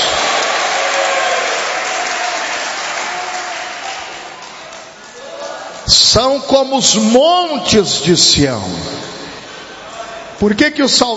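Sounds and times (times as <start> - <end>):
audience applause: 0.0 - 5.7
speech: 6.1 - 9.0, 10.4 - 11.1.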